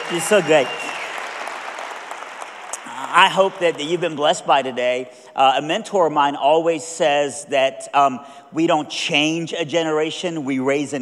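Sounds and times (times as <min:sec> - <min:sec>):
crowd applauding: 0:00.0 - 0:04.4
speech: 0:00.1 - 0:00.9, 0:03.2 - 0:10.9.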